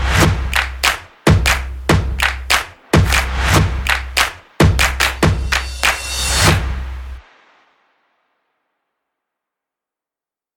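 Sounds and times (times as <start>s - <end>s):
upbeat drum percussion background music: 0.0s - 7.2s.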